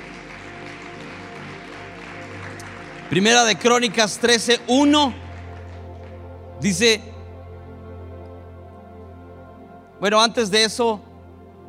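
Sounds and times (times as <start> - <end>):
audience applause: 0.0 - 6.3
speech: 3.1 - 5.2, 6.6 - 7.1, 10.0 - 11.1.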